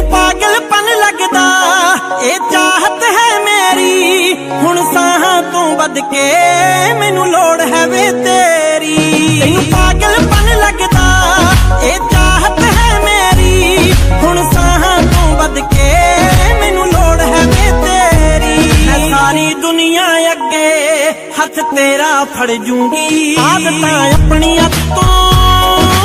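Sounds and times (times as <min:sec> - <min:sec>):
Punjabi sad love song ringtone: 0:00.1 - 0:09.2, 0:10.0 - 0:25.9.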